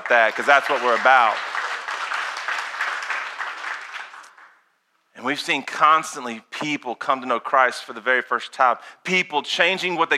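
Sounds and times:
audience applause: 0.0 - 4.5
speech: 0.1 - 1.5, 5.2 - 10.1.

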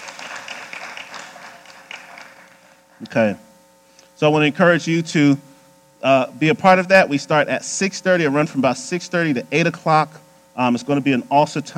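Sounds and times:
audience hand clapping: 0.0 - 3.0
speech: 3.0 - 3.5, 4.2 - 11.7.

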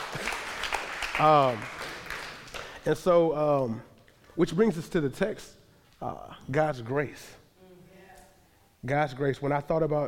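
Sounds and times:
crowd applauding: 0.0 - 2.8
speech: 1.2 - 1.8, 2.8 - 7.4, 8.8 - 10.0.

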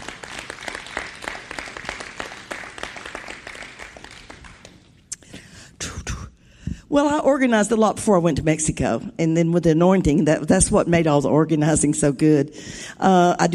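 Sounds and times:
audience applause: 0.0 - 4.9
speech: 6.9 - 13.5.

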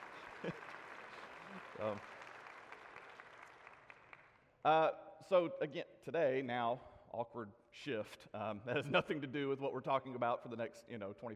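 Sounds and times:
audience applause: 0.0 - 4.4
speech: 0.4 - 0.8, 1.5 - 2.2, 4.6 - 11.3.

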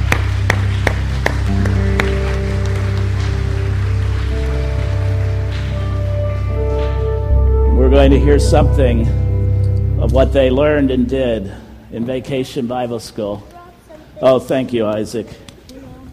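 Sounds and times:
audience applauding children: 0.0 - 7.4
speech: 8.0 - 9.2, 10.0 - 13.5, 14.2 - 15.4.

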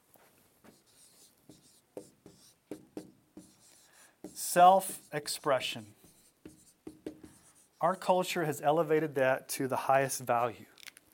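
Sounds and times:
writing on a board: 0.6 - 8.3
speech: 4.5 - 6.0, 7.8 - 10.7.

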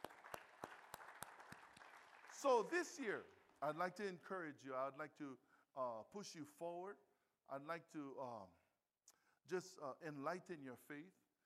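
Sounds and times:
audience applauding: 0.0 - 3.2
speech: 2.4 - 8.6, 9.5 - 11.2.

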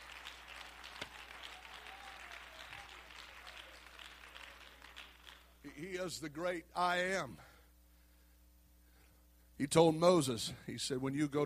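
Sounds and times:
audience clapping hands: 0.0 - 5.9
speech: 5.8 - 7.5, 9.6 - 11.4.

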